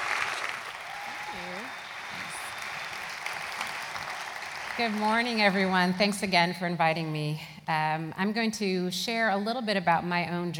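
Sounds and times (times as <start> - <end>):
Hope College audience applause welcoming a speaker: 0.0 - 6.0
speech: 4.8 - 10.5.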